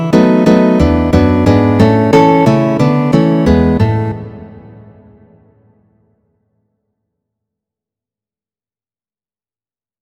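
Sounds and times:
guitar duet: 0:00.0 - 0:05.8.

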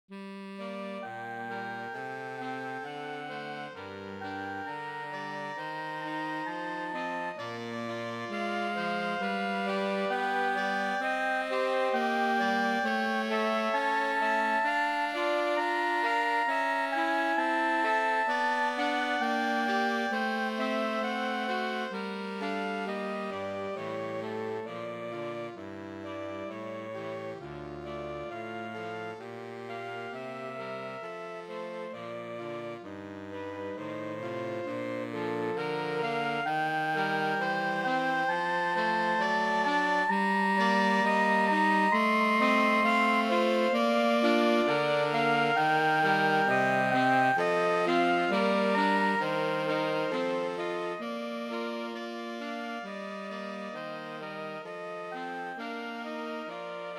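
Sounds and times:
sonata prelude: 0:00.1 - 0:56.9.

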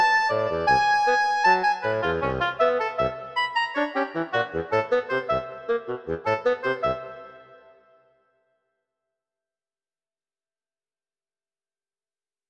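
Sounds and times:
oboe and bassoon playing molto vivo: 0:00.0 - 0:07.6.

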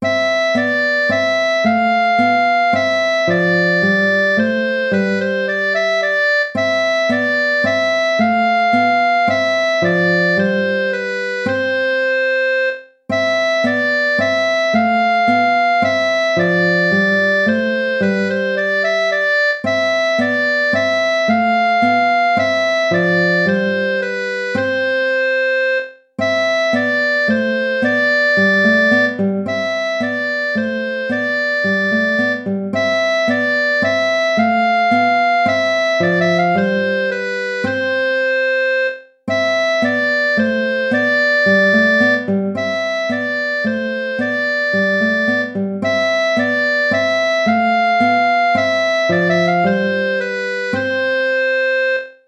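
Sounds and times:
minuet: 0:00.0 - 0:52.2.

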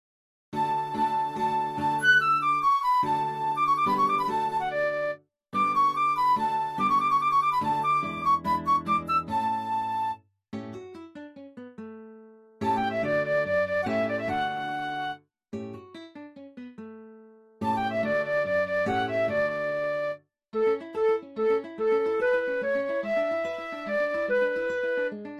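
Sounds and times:
slow classical piece: 0:00.6 - 0:10.2, 0:12.6 - 0:15.2, 0:17.6 - 0:25.3.

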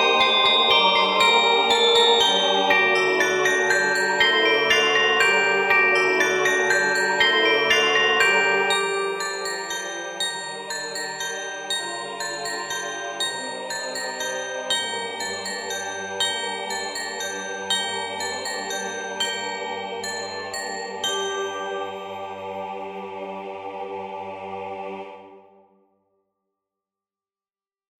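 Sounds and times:
handbells ringing: 0:00.0 - 0:22.4
SATB choir singing: 0:00.0 - 0:25.6.

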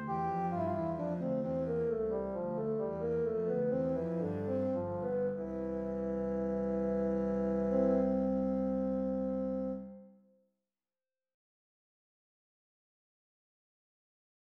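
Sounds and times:
bassoon playing a two-voice invention: 0:00.0 - 0:10.2
contrabassoon playing a two-voice invention: 0:00.0 - 0:10.2.

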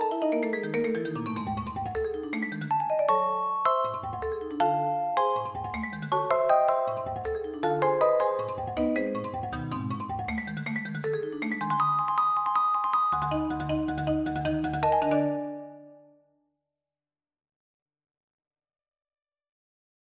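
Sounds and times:
piano suite arranged for vibraphone and marimba: 0:00.0 - 0:15.9.

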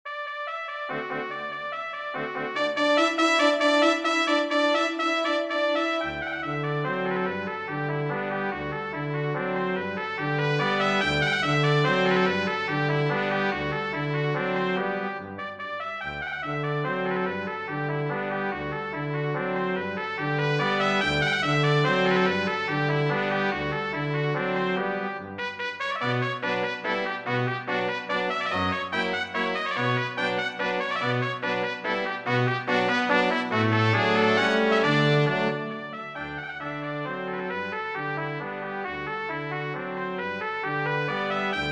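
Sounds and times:
brass quartet: 0:00.1 - 0:41.6.

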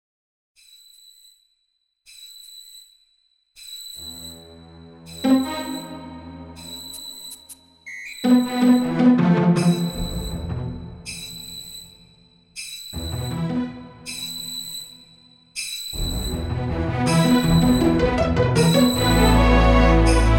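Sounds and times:
incidental music: 0:04.4 - 0:07.1, 0:08.2 - 0:11.4, 0:13.0 - 0:14.1, 0:16.0 - 0:20.3.

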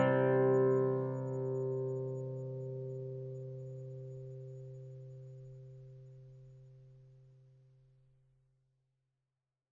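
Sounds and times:
solo guitar: 0:00.0 - 0:07.2.

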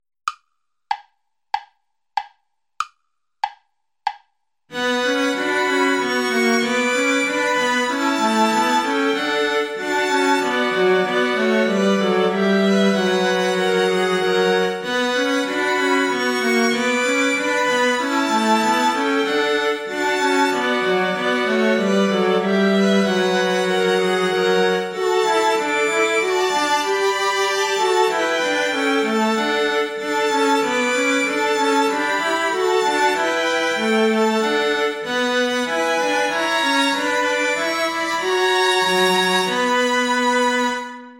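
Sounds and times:
backing track without violin: 0:03.4 - 0:41.1.

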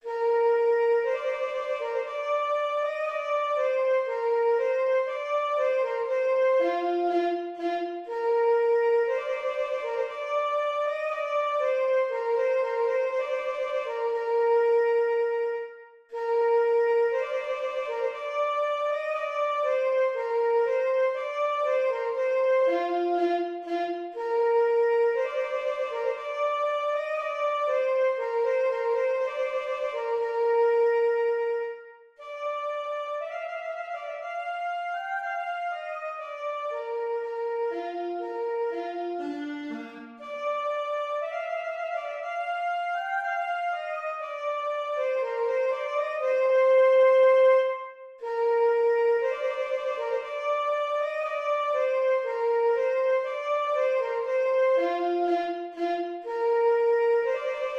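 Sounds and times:
trumpet piece: 0:00.1 - 0:57.7.

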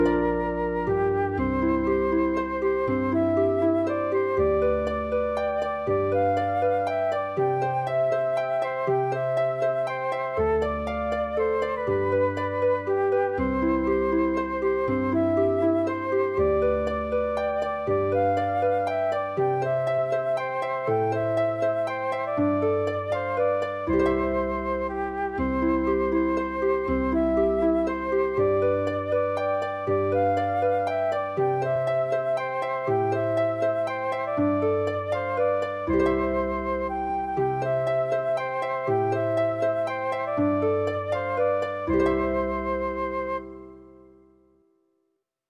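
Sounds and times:
flute: 0:00.0 - 0:44.5
harp: 0:00.0 - 0:44.7.

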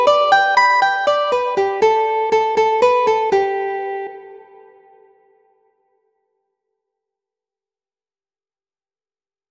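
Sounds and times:
guitar allegretto: 0:00.0 - 0:05.6.

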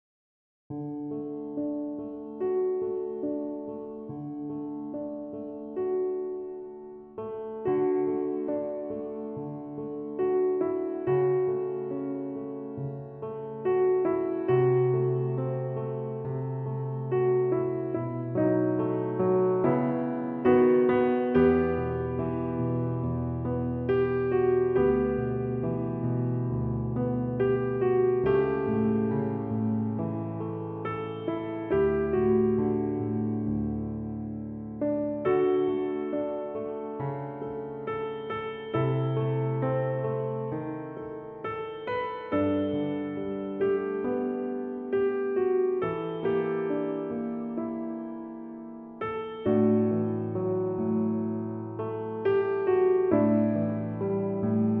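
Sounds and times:
piano sonata: 0:00.7 - 0:54.7.

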